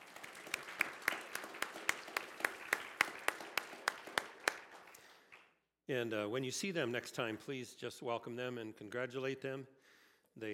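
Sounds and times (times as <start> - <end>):
audience clapping at a board meeting: 0.0 - 5.6
speech: 5.9 - 9.8, 10.4 - 10.5.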